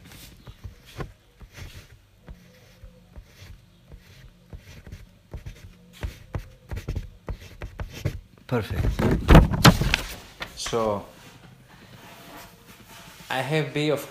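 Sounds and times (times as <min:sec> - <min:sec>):
pen or pencil scratching across paper as a word is written: 0:00.6 - 0:08.2
speech: 0:08.5 - 0:09.5, 0:10.7 - 0:11.2, 0:13.3 - 0:14.0.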